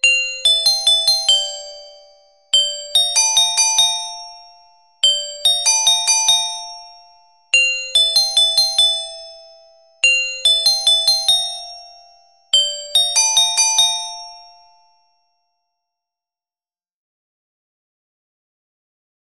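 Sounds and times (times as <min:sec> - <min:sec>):
carillon bells playing: 0:00.0 - 0:14.7.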